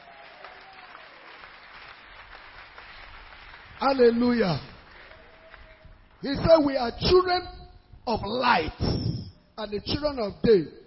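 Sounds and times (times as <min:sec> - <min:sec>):
audience clapping hands: 0:00.0 - 0:06.4
speech: 0:03.8 - 0:04.7, 0:06.2 - 0:09.0, 0:09.6 - 0:10.8.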